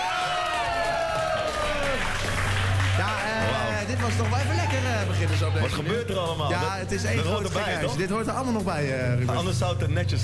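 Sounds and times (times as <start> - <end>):
audience applause for a group: 0.0 - 7.8
sustained tone: 1.7 - 8.0
speech: 4.0 - 10.2.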